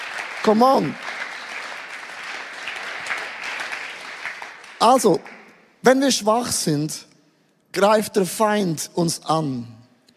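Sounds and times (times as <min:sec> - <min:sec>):
audience applause: 0:00.0 - 0:05.5
speech: 0:00.4 - 0:01.0, 0:04.8 - 0:07.1, 0:07.7 - 0:09.8.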